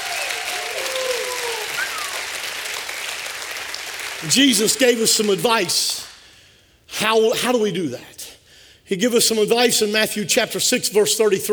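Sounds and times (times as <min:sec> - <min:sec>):
audience clapping: 0:00.0 - 0:06.3
speech: 0:04.2 - 0:06.0, 0:07.0 - 0:08.2, 0:08.9 - 0:11.5.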